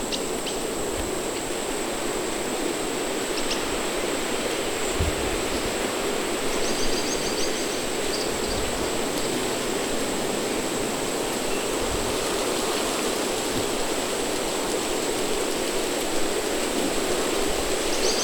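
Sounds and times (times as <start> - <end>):
nature ambience loop: 0.0 - 18.2.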